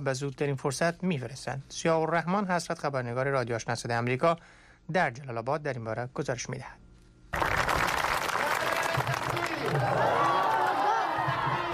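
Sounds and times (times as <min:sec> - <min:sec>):
speech: 0:00.0 - 0:07.6
applause: 0:07.3 - 0:11.7
large crowd of schoolchildren cheering in welcome: 0:07.7 - 0:11.7.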